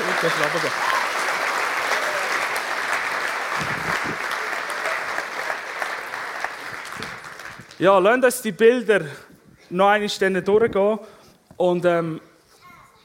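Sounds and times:
applause: 0.0 - 7.9
speech: 0.2 - 1.0, 7.8 - 12.3.

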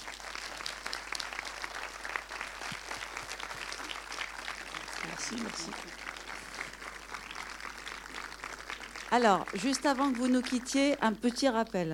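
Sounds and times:
audience applause: 0.0 - 11.0
speech: 5.2 - 6.1, 9.1 - 11.9.

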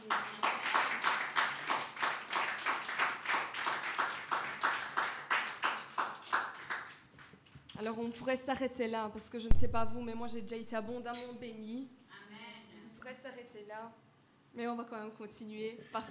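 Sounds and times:
church congregation clapping in praise to God: 0.0 - 7.5
speech: 7.8 - 12.0, 13.6 - 16.0.

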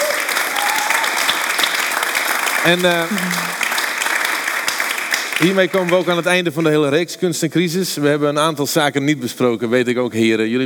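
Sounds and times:
audience applause for four guests: 0.0 - 6.8
speech: 2.6 - 3.6, 5.4 - 10.6.

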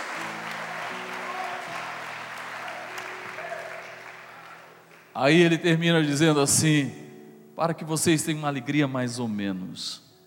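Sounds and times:
audience applauding: 0.0 - 5.3
speech: 5.2 - 7.0, 7.6 - 10.0.

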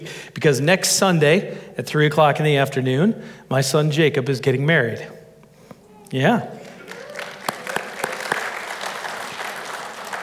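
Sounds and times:
speech: 0.3 - 5.2, 6.1 - 6.6
audience applause: 6.6 - 10.2.

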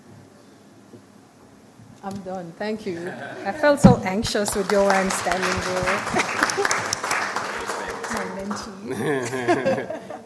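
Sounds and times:
speech: 2.0 - 6.9, 8.5 - 10.0
laughter: 3.0 - 3.8, 5.6 - 10.2
audience applause: 4.2 - 9.8.

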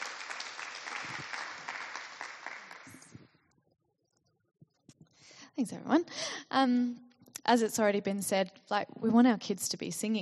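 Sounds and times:
round of applause: 0.0 - 3.2
speech: 5.6 - 10.2.

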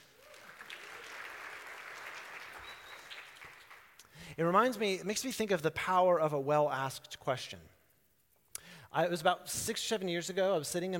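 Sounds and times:
audience clapping: 0.0 - 4.2
speech: 4.4 - 7.7, 9.0 - 10.9.

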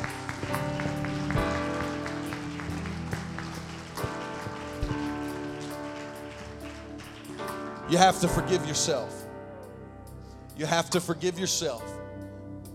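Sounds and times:
audience clapping: 0.0 - 8.3
speech: 7.9 - 9.2, 10.6 - 12.0.

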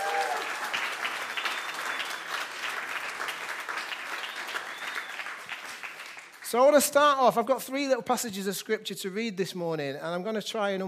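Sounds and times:
audience applause: 0.0 - 6.5
speech: 6.5 - 10.8.

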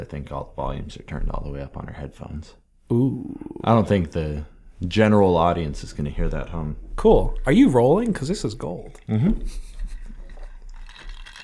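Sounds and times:
speech: 0.0 - 9.7
ice cubes clinking in a glass of water: 10.2 - 11.4.

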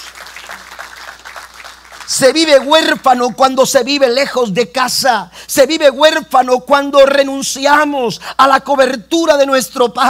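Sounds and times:
audience applauding: 0.0 - 2.9
speech: 2.1 - 10.0.

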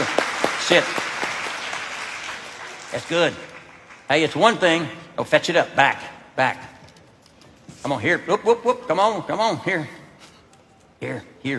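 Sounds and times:
audience clapping: 0.0 - 4.7
speech: 0.7 - 1.1, 2.9 - 3.5, 4.1 - 6.7, 7.8 - 10.0, 11.0 - 11.5.

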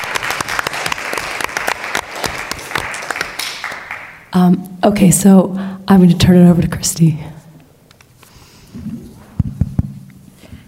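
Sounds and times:
audience applauding: 0.0 - 4.3
speech: 4.3 - 7.4.

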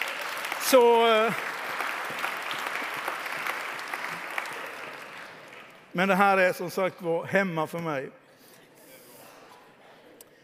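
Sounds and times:
church congregation applause: 0.0 - 7.0
speech: 0.7 - 1.5, 6.0 - 8.2.

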